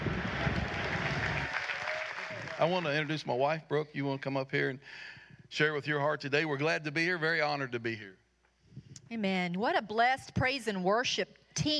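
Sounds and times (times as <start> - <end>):
church congregation clapping after a pastor's introduction: 0.0 - 3.5
speech: 2.6 - 8.2, 9.1 - 11.7.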